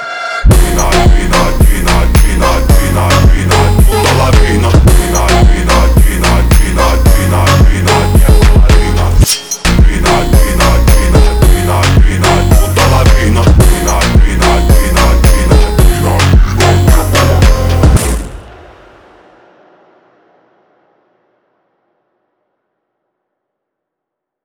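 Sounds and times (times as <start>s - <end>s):
phonk remix: 0.5s - 19.1s.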